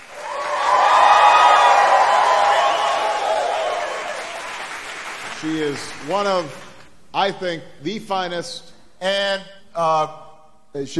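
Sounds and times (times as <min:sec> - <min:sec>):
audience applause: 0:00.0 - 0:06.1
speech: 0:05.5 - 0:10.2, 0:10.8 - 0:10.9.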